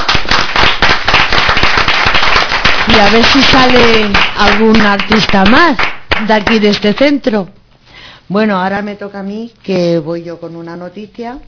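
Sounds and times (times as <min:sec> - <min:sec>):
group applause honouring fellow members: 0:00.0 - 0:06.8
speech: 0:03.0 - 0:07.6, 0:08.3 - 0:11.4.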